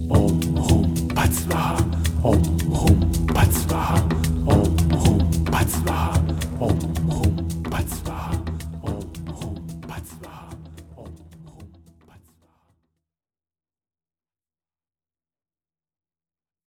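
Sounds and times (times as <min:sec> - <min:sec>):
mantra chanting: 0:00.1 - 0:12.3.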